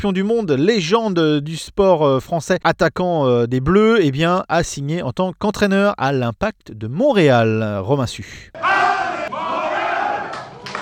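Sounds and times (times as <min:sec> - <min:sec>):
speech: 0:00.0 - 0:09.4
Impact de Montréal supporters and ultras roaring and chanting at Pierre-Elliott Trudeau airport: 0:08.5 - 0:10.8.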